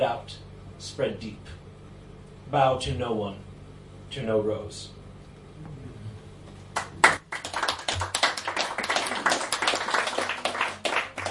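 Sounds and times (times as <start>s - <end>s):
speech: 0.0s - 1.6s, 2.5s - 3.5s, 4.1s - 5.0s
applause: 6.7s - 11.2s.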